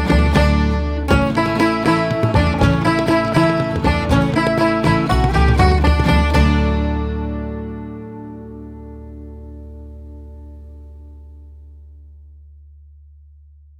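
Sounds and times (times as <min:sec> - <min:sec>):
jig tune: 0:00.0 - 0:10.6.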